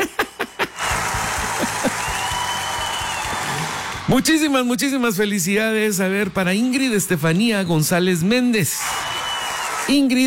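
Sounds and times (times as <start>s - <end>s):
applause sound effect: 0.7s - 4.7s, 8.8s - 10.2s
speech: 4.1s - 9.1s, 9.9s - 10.2s.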